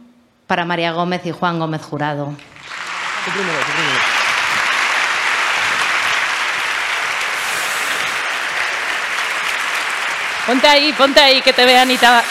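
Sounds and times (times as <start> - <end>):
speech: 0.5 - 2.5, 3.2 - 4.2, 10.5 - 12.2
large audience applause: 2.5 - 12.2.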